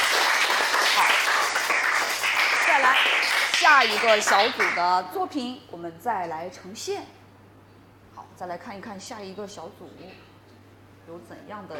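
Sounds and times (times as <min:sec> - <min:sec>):
audience applause: 0:00.0 - 0:04.8
speech: 0:02.8 - 0:07.2, 0:08.4 - 0:10.3, 0:11.1 - 0:11.7.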